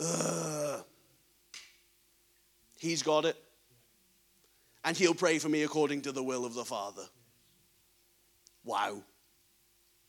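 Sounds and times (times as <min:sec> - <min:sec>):
person groaning in wordless prayer: 0:00.0 - 0:00.9
speech: 0:02.8 - 0:03.5, 0:04.8 - 0:07.2, 0:08.6 - 0:09.1.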